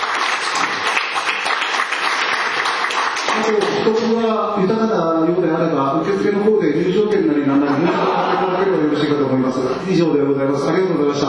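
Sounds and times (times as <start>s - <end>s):
audience applause: 0.0s - 3.9s
speech: 3.4s - 11.2s
laughter: 7.2s - 9.8s.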